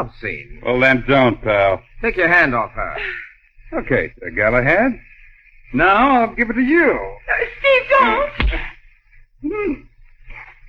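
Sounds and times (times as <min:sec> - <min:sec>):
speech: 0:00.0 - 0:05.1, 0:05.7 - 0:08.6
hard punch knocking a man out: 0:08.4 - 0:08.6.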